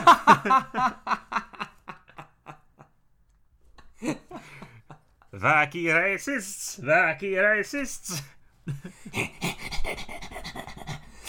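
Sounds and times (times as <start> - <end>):
speech: 0.1 - 1.3, 4.0 - 4.5, 5.3 - 10.0
person imitating a wheezy cartoon dog laugh: 9.0 - 11.2.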